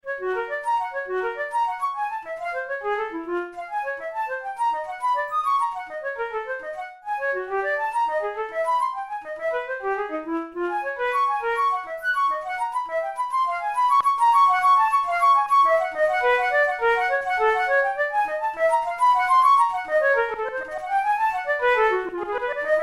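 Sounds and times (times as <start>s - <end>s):
solo flute studies: 0.0s - 22.8s.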